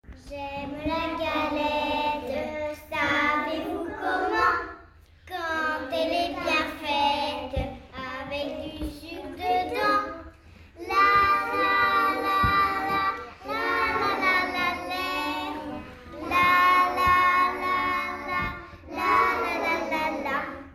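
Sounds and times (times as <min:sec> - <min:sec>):
kindergarten children singing a song together: 0:00.1 - 0:20.7.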